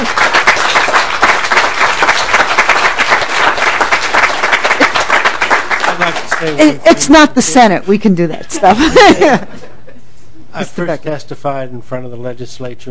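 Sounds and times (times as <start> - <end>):
crowd applauding: 0.0 - 7.3
speech: 6.4 - 9.6, 10.6 - 12.8
laughter: 8.2 - 10.0.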